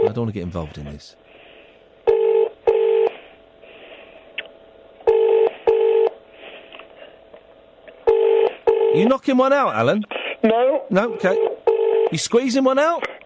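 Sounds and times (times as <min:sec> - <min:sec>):
speech: 0:00.2 - 0:01.2, 0:09.0 - 0:11.5, 0:12.1 - 0:13.1
telephone ringing tone: 0:02.0 - 0:03.2, 0:05.0 - 0:06.2, 0:08.1 - 0:09.1, 0:11.2 - 0:12.2.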